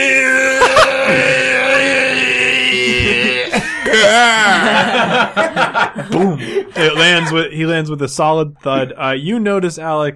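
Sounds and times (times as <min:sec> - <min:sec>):
person voicing a creature's scream: 0:00.0 - 0:04.8
laughter: 0:00.4 - 0:07.6
speech: 0:03.9 - 0:10.1.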